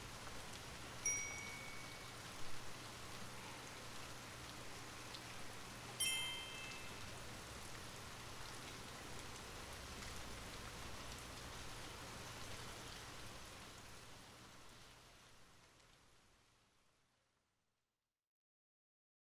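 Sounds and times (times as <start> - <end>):
relaxing rain: 0.0 - 17.6
bell: 1.0 - 2.1, 6.0 - 7.2.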